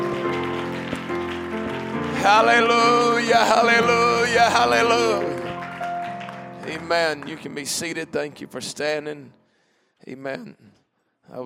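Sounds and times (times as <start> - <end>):
audience clapping hands: 0.0 - 8.8
speech: 2.2 - 5.4, 6.7 - 9.4, 10.0 - 11.4.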